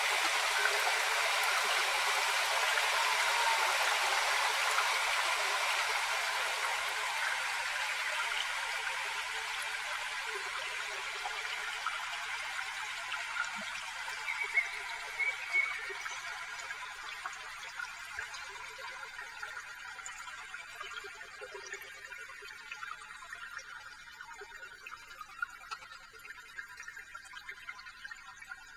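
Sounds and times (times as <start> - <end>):
train: 0.0 - 13.7
rain: 0.0 - 16.8.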